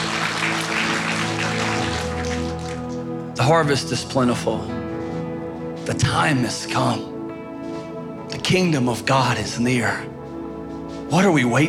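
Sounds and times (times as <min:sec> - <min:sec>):
audience clapping: 0:00.0 - 0:03.2
speech: 0:03.4 - 0:04.8, 0:05.9 - 0:07.1, 0:08.5 - 0:10.1, 0:11.1 - 0:11.6.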